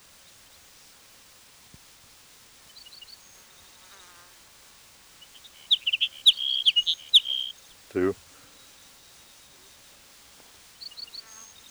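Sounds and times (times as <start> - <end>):
hedge sparrow song: 5.2 - 8.2
speech: 8.0 - 8.2.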